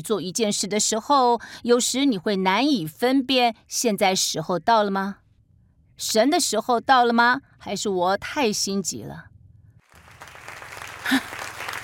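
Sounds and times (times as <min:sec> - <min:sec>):
speech: 0:00.0 - 0:05.2, 0:06.0 - 0:09.3
congregation applause during a church sermon: 0:09.9 - 0:11.8.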